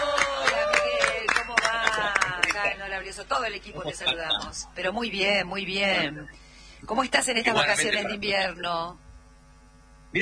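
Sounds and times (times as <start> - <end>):
audience applause: 0.0 - 2.7
speech: 3.0 - 9.0.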